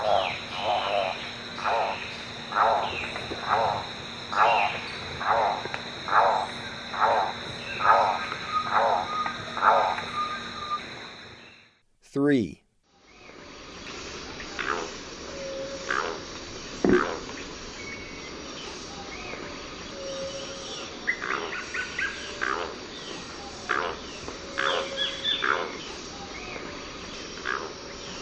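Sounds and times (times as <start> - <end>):
Golden-collared Toucanet calling in eastern lowlands of South America: 0.0 - 10.8, 14.4 - 17.5, 20.0 - 26.6, 27.4 - 28.2.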